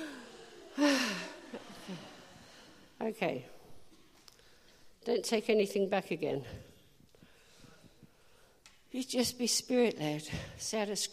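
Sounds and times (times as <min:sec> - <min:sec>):
deep breath during a church service: 0:00.0 - 0:03.0, 0:07.1 - 0:08.6
soft breath sounds: 0:00.0 - 0:05.0, 0:06.4 - 0:08.9
speech: 0:03.1 - 0:03.6, 0:05.0 - 0:06.7, 0:08.9 - 0:11.1.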